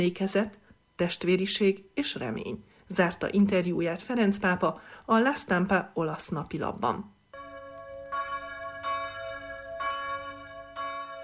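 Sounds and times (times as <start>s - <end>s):
speech: 0.0s - 7.2s
church bells ringing: 7.4s - 11.2s.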